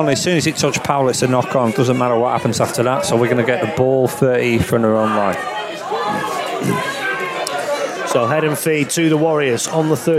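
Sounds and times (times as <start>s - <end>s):
speech: 0.0s - 6.9s, 8.1s - 10.1s
rugby stadium crowd jeering: 0.0s - 10.1s.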